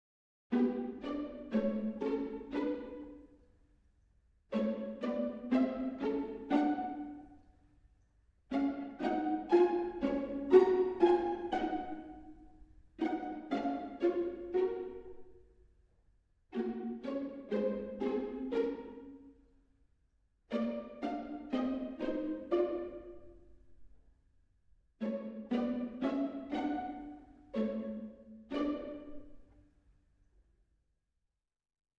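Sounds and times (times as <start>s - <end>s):
strings: 0.5s - 3.6s, 4.5s - 7.6s, 8.5s - 15.8s, 16.5s - 19.5s, 20.5s - 24.1s, 25.0s - 29.7s.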